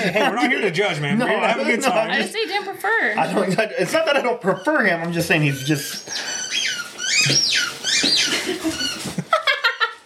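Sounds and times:
laughter: 0.0 - 2.2, 8.0 - 10.0
speech: 0.0 - 6.4
dog noise in the studio: 4.4 - 9.2.

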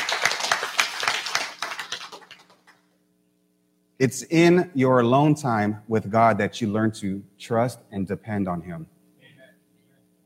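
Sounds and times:
audience clapping: 0.0 - 2.9
speech: 4.0 - 9.0.

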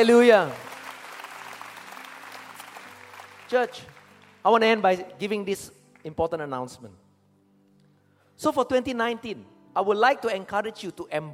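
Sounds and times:
speech: 0.0 - 0.6, 3.5 - 7.0, 8.4 - 11.3
round of applause: 0.0 - 4.5.

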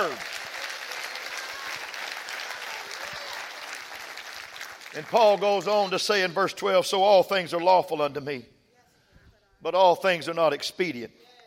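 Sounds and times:
audience clapping hands: 0.0 - 6.2
speech: 5.0 - 8.5, 9.6 - 11.3.

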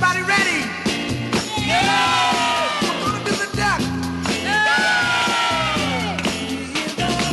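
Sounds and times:
loud dance track with pounding beat: 0.9 - 7.3
fake crowd whoops and cheers: 1.4 - 3.2, 4.4 - 6.3.

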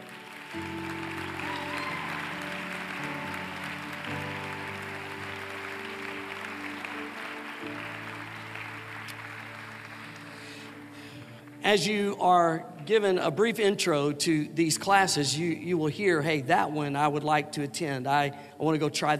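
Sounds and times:
audience applause: 0.0 - 11.6
speech: 11.7 - 19.1.

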